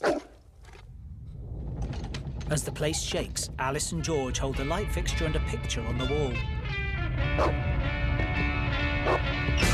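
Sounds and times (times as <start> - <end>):
excited dogs barking and yipping rushing down stairs: 0.0 - 0.3, 7.3 - 7.6, 9.0 - 9.3
musical backdrop: 2.2 - 9.7
speech: 2.5 - 6.6, 7.2 - 8.0.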